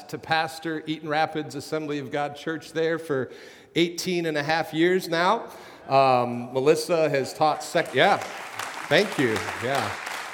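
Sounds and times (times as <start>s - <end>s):
speech: 0.1s - 10.1s
audience applause: 7.4s - 10.3s.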